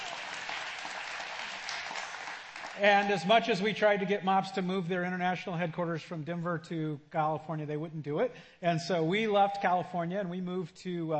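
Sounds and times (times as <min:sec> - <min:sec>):
audience clapping: 0:00.0 - 0:03.6
speech: 0:02.8 - 0:11.1.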